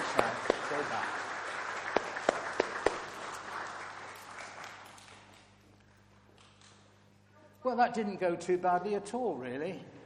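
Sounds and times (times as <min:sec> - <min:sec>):
audience applause: 0:00.0 - 0:05.6
speech: 0:07.7 - 0:10.0.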